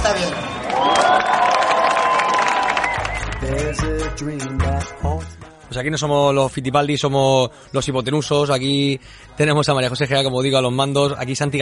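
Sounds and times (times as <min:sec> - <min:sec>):
audience applause: 0:00.2 - 0:03.6
speech: 0:03.7 - 0:11.6.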